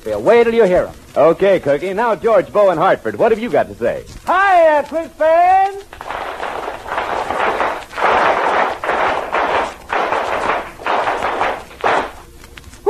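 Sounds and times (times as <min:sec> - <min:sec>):
speech: 0:00.1 - 0:06.1
audience applause from the Boy Scouts: 0:05.9 - 0:12.2.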